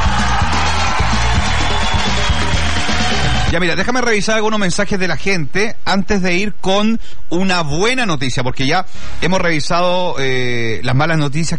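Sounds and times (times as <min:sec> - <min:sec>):
applause: 0:00.0 - 0:03.6
speech: 0:03.5 - 0:11.5.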